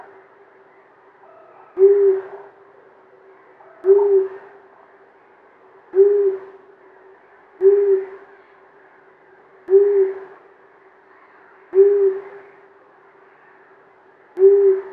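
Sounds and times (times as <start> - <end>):
male long-eared owl calling a deep short hoot: 1.3 - 2.5, 3.8 - 4.6, 6.0 - 6.6, 7.6 - 8.3, 9.7 - 10.4, 11.8 - 12.6, 14.4 - 14.9.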